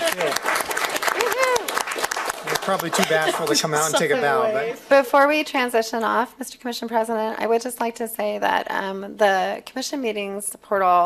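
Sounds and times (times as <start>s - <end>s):
group clapping: 0.0s - 4.1s
laughter: 2.4s - 5.0s
speech: 2.7s - 11.0s.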